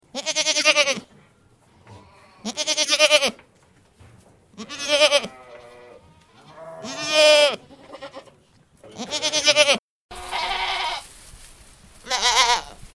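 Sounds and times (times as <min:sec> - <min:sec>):
goat bleating: 0:00.1 - 0:01.1, 0:01.9 - 0:03.4, 0:04.6 - 0:11.1, 0:12.0 - 0:12.9.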